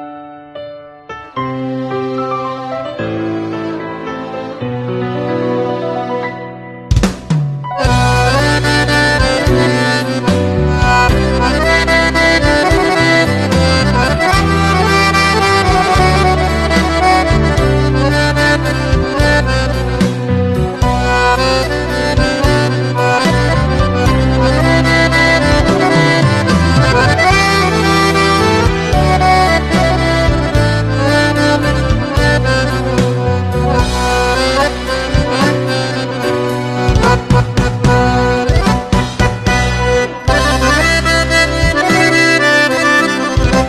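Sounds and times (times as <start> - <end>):
accordion: 1.2 - 43.6.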